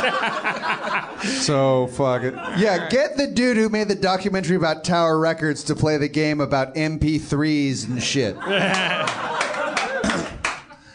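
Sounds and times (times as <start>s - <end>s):
laughter: 0.0s - 3.2s, 7.8s - 10.8s
speech: 0.0s - 9.5s
sharp forceful hand claps: 8.7s - 10.8s.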